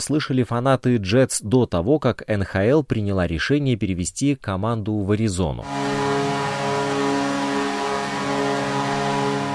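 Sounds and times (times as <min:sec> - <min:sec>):
speech: 0:00.0 - 0:06.0
truck air horn used as a hockey goal horn: 0:05.6 - 0:09.5.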